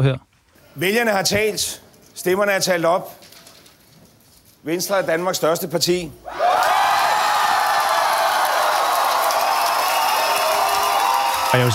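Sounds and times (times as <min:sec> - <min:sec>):
speech: 0:00.0 - 0:03.2, 0:04.6 - 0:06.7, 0:11.5 - 0:11.7
crowd cheering and applauding at election night: 0:06.3 - 0:11.7.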